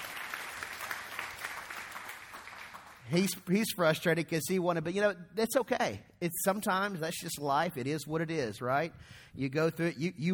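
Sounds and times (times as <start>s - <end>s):
audience hand clapping: 0.0s - 3.4s
speech: 3.1s - 10.3s.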